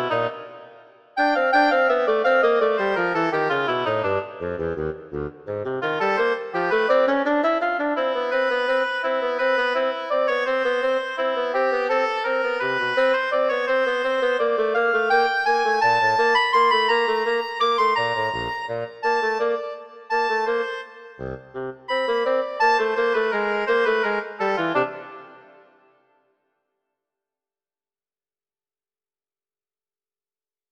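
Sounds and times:
oboe and bassoon playing presto: 1.2s - 25.6s.

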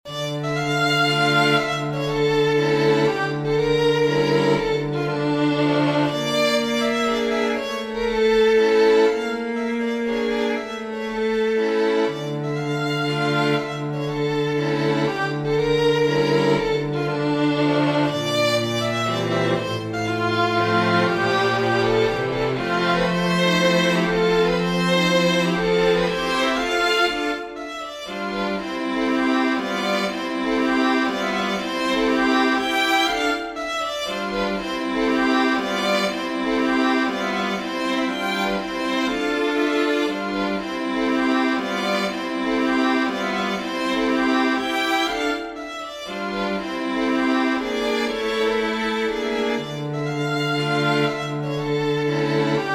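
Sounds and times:
string quartet: 0.0s - 52.7s.

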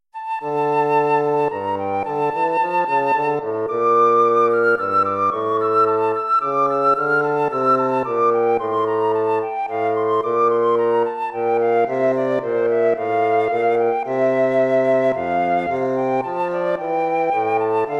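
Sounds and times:
baroque dance piece: 0.2s - 17.9s.

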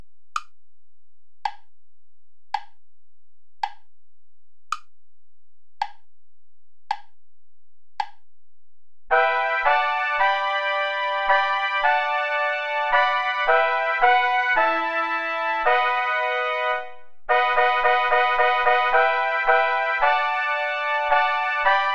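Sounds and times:
play-along backing music without trumpet: 9.1s - 21.9s.

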